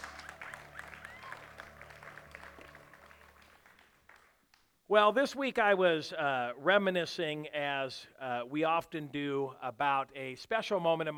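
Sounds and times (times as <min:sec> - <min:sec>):
faint high-pitched whoops: 0:00.0 - 0:03.2
audience applause: 0:00.0 - 0:04.4
speech: 0:04.9 - 0:11.1.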